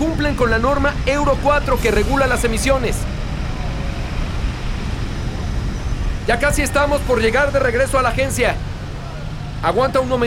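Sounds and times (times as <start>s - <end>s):
traffic rumbling in Mexico City during a motorcycle ride: 0.0s - 10.2s
speech: 0.3s - 3.2s, 6.3s - 8.7s, 9.6s - 10.2s.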